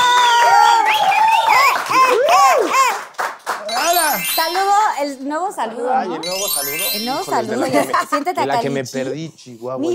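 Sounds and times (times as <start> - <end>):
audience cheering: 0.0 - 3.0
audience applause: 0.0 - 4.1
speech: 5.5 - 9.9.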